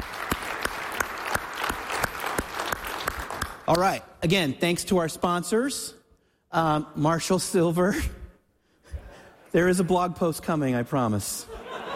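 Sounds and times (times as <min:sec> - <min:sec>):
audience applause: 0:00.0 - 0:03.6
speech: 0:03.7 - 0:08.2, 0:09.5 - 0:11.6
laughter: 0:11.4 - 0:11.9.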